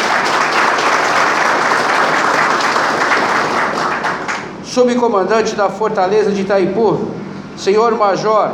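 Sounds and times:
crowd applause: 0.0s - 4.6s
speech: 4.8s - 8.5s.

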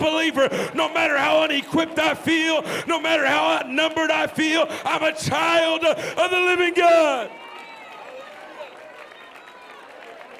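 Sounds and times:
speech: 0.3s - 7.4s
audience clapping: 7.1s - 10.3s.

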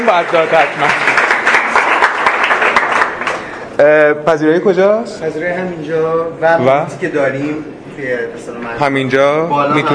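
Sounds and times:
audience clapping at an event: 0.0s - 3.7s
speech: 0.1s - 1.1s, 3.8s - 9.9s.

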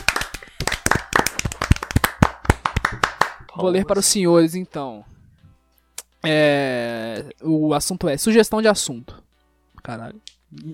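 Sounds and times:
round of applause: 0.0s - 3.8s
speech: 3.6s - 5.2s, 6.2s - 9.2s, 9.8s - 10.7s.

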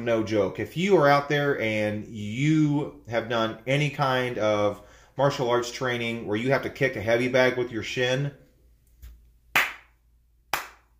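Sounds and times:
speech: 0.0s - 8.4s
slow clap: 9.0s - 10.9s.

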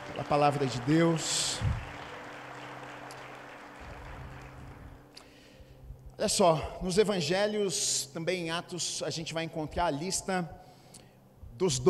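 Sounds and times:
audience applause: 0.0s - 5.0s
speech: 0.2s - 1.9s, 6.2s - 10.6s, 11.6s - 11.8s.

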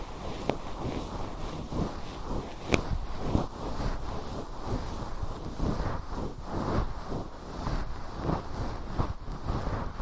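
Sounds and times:
fluffy ear cleaning rustling and brushing: 0.0s - 10.0s
sharp crackling ticks: 9.2s - 9.4s.

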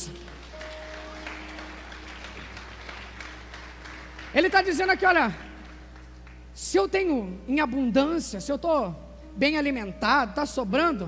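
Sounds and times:
audience applause: 0.0s - 6.5s
speech: 4.4s - 5.5s, 6.7s - 11.0s.

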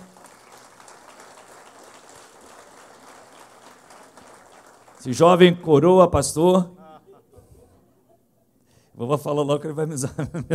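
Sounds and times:
audience applause: 0.0s - 5.6s
speech: 5.0s - 6.8s, 9.0s - 10.5s
laughter: 6.5s - 8.3s, 10.0s - 10.5s.

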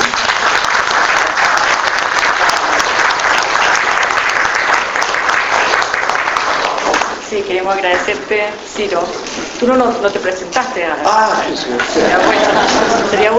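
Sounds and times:
audience applause: 0.0s - 7.2s
speech: 7.4s - 13.3s
laughter: 11.7s - 13.3s.

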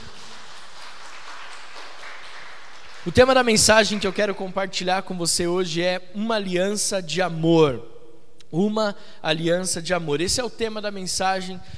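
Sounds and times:
audience applause: 0.0s - 4.3s
speech: 3.0s - 7.9s, 8.5s - 11.7s.

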